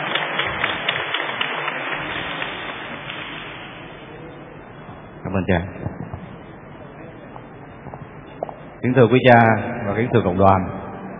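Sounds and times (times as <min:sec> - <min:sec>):
audience applause welcoming a speaker: 0:00.0 - 0:03.7
speech: 0:05.4 - 0:05.9, 0:08.8 - 0:10.8.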